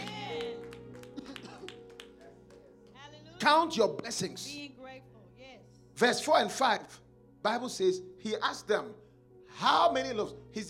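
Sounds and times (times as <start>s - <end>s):
audience clapping: 0.0s - 3.0s
speech: 3.4s - 4.8s, 6.0s - 9.0s, 9.6s - 10.6s.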